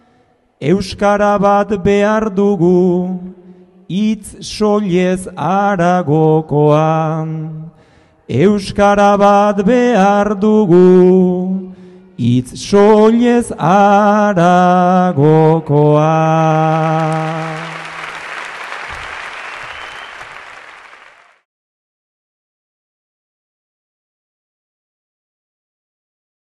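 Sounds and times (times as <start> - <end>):
person singing a bertso greeting verse: 0.6 - 18.2.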